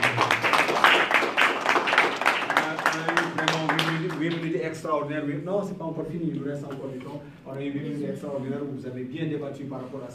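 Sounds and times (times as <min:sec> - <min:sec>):
audience applause: 0:00.0 - 0:04.5
speech: 0:04.8 - 0:10.1.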